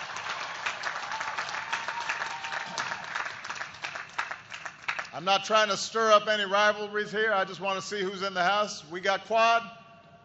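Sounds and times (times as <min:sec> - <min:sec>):
large audience applause: 0:00.0 - 0:05.1
speech: 0:05.2 - 0:09.8.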